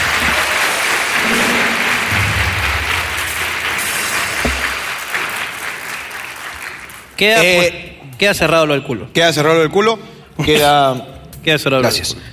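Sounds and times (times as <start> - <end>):
audience applause: 0.0 - 7.2
speech: 7.2 - 12.3.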